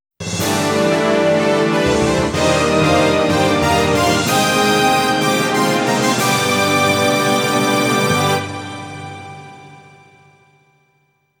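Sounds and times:
victorious fanfare: 0.4s - 8.8s.

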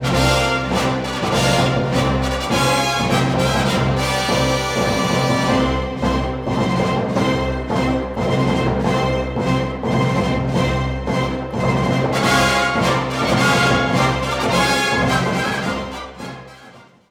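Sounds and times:
battle victory music: 0.0s - 17.0s.

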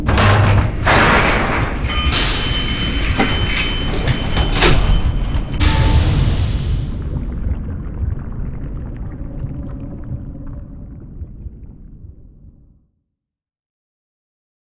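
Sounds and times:
elevator ride: 0.0s - 7.6s.

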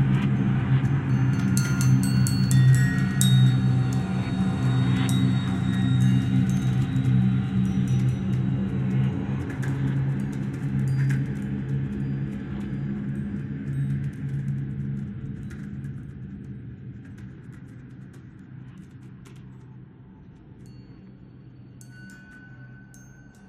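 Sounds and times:
ambient bells: 0.2s - 14.5s, 20.5s - 23.4s.

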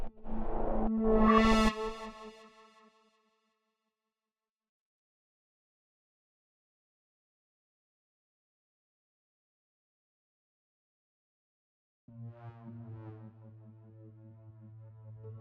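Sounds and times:
synths: 0.1s - 2.5s, 12.1s - 15.3s.

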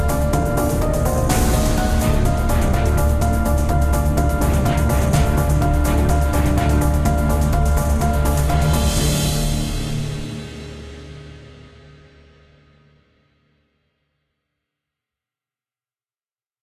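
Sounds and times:
swarm fight music: 0.0s - 10.8s.

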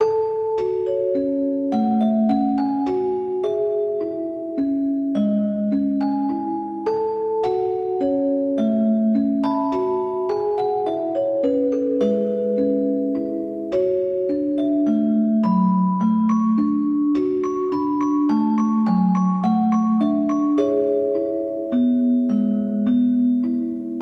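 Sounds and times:
music box: 0.0s - 24.0s.

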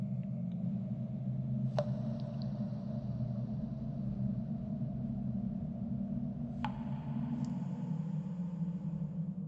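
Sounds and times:
galleries and tunnels ambience: 0.1s - 9.4s.

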